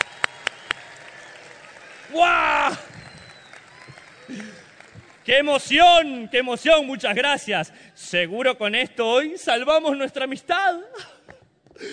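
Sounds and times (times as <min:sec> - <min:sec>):
loud applause: 0:00.0 - 0:07.2
speech: 0:02.1 - 0:02.8, 0:05.3 - 0:11.2.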